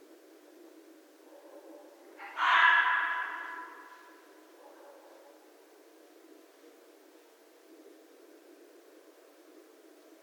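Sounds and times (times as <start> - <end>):
red fox screaming: 2.2 - 4.2.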